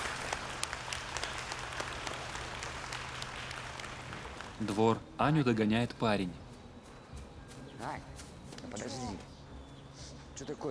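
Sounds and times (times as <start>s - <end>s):
people applauding at a ceremony in a children's home: 0.0s - 5.0s
low constant hum: 0.0s - 10.6s
speech: 4.6s - 6.4s, 10.4s - 10.6s.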